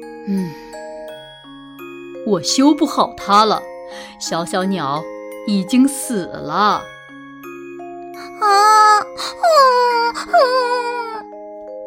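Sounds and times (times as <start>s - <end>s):
speech: 0.0s - 0.8s, 2.3s - 6.9s
person crying: 8.2s - 11.2s.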